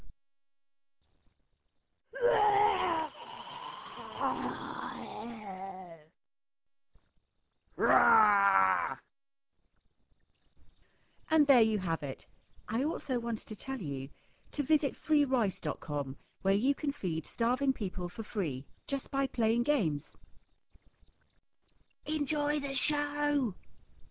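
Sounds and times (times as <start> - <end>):
people imitating goblin roars: 2.2 - 6.1, 7.8 - 9.0
speech: 11.4 - 20.2, 22.0 - 23.6.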